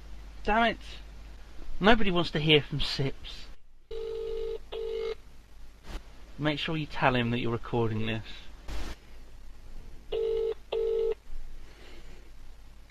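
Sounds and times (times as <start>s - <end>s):
speech: 0.4s - 1.1s, 1.8s - 3.5s, 6.4s - 8.5s
electronic phone dialing and ringing tones: 3.9s - 5.2s, 10.1s - 11.2s.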